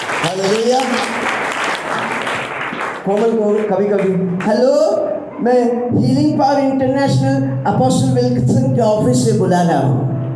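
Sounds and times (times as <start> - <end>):
audience applause: 0.0 - 4.2
speech: 0.2 - 1.2, 3.1 - 10.1.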